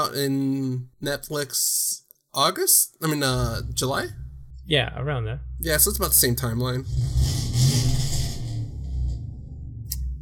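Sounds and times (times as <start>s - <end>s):
speech: 0.0s - 7.7s
car racing through a neighbourhood street, engine roar: 3.3s - 10.2s.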